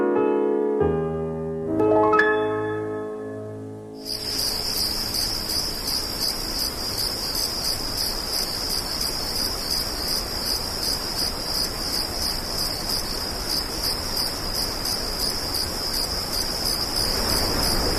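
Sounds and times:
tonal music: 0.0 - 4.0
crickets chirping: 4.0 - 17.9.

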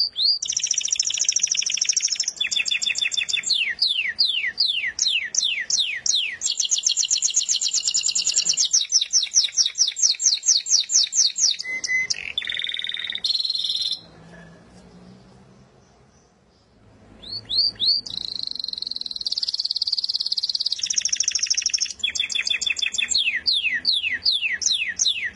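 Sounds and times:
contest-winning canary singing whistles and buzzy trill: 0.0 - 25.3.

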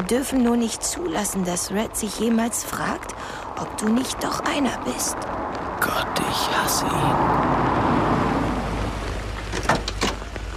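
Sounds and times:
heavy rain around a car: 0.0 - 10.5
speech: 0.1 - 7.8
low rumbling drone: 3.0 - 9.5.

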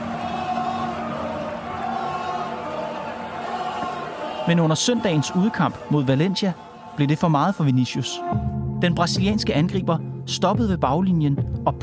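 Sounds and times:
football spectators in a stadium chanting: 0.0 - 8.4
speech: 4.5 - 11.8.

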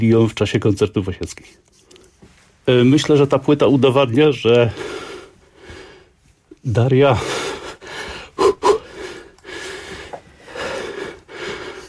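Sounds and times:
speech: 0.0 - 1.8, 2.7 - 5.1, 6.6 - 7.4
restless heavy uneven breathing with gasps: 4.5 - 11.8.

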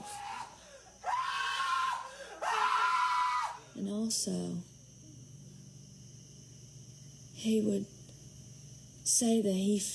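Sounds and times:
boy screaming in high-pitched shrieks: 0.0 - 3.6
speech: 3.8 - 4.7, 7.4 - 8.0, 9.1 - 9.9.

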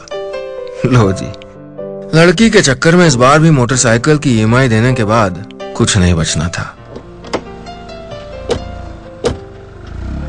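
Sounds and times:
speech: 0.8 - 1.4, 2.1 - 6.8
car doors shutting: 6.8 - 10.2.

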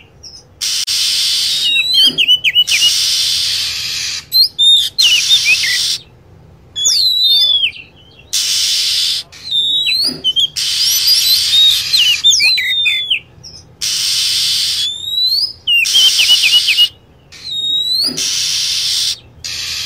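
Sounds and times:
lovebird calls: 0.0 - 6.2, 6.8 - 19.8.

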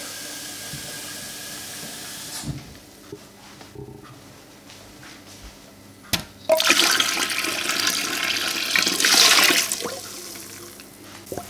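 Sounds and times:
hot water pouring into an electric canning pot: 6.5 - 11.4.

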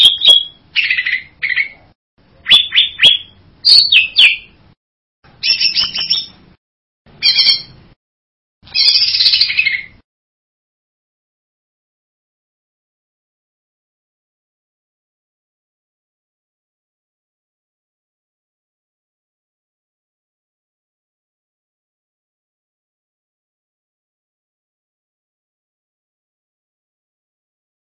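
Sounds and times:
bird buzzy whistled song: 0.0 - 1.8, 2.4 - 4.6, 5.4 - 6.4, 7.2 - 7.8, 8.7 - 10.0.

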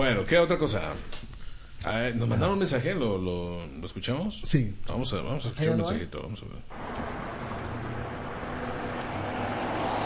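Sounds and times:
speech: 0.0 - 7.2
car: 6.7 - 10.0.

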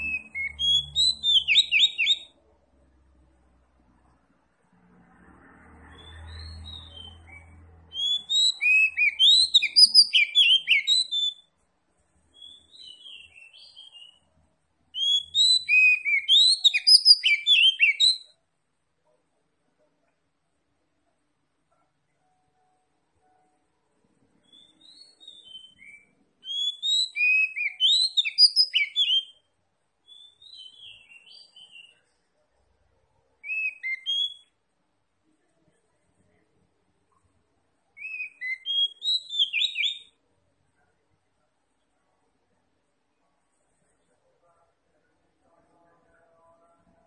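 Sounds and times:
Oriental magpie-robin singing: 0.0 - 2.4, 5.9 - 11.5, 12.3 - 18.4, 24.3 - 32.2, 33.4 - 34.6, 37.9 - 40.2.

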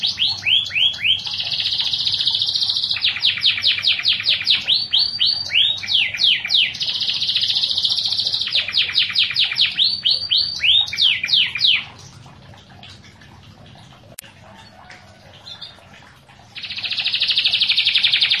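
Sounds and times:
canary singing with buzzy rolling trill: 0.0 - 12.0, 16.6 - 18.3.

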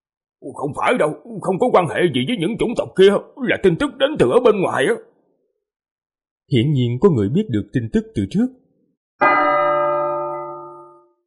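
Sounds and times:
speech: 0.4 - 5.1, 6.5 - 8.6
single bell strike ringing: 9.2 - 11.2.

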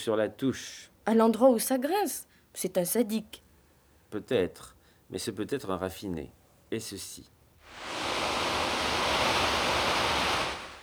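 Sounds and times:
speech: 0.0 - 3.4, 4.1 - 8.0
electronic white noise: 7.7 - 10.8.

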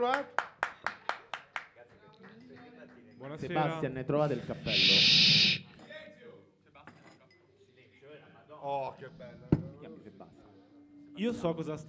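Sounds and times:
speech: 0.0 - 0.4, 3.2 - 5.6, 8.6 - 10.5, 11.2 - 11.8
rhythmic hand claps welcoming a professor on an Italian show: 0.0 - 1.8.

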